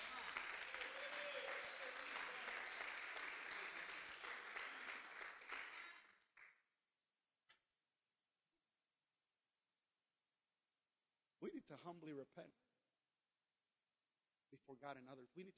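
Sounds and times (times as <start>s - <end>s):
audience clapping hands: 0.0s - 6.6s
speech: 11.7s - 12.6s, 14.5s - 15.5s.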